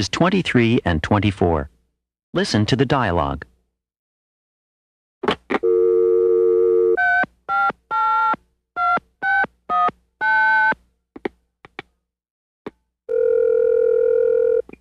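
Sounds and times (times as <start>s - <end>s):
speech: 0.0s - 1.7s, 2.3s - 3.5s
phone dial tone: 5.6s - 7.2s, 13.1s - 14.7s
phone dialing tones: 5.6s - 10.7s, 13.1s - 14.7s.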